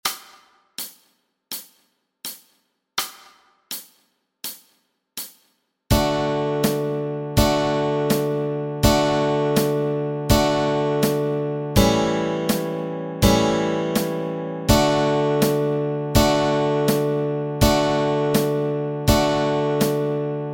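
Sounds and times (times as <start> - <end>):
guitar chords: 5.9 - 20.5.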